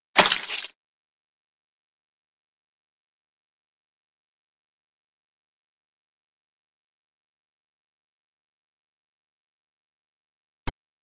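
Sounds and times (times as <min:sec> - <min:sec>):
fight sounds: 0:00.2 - 0:00.7.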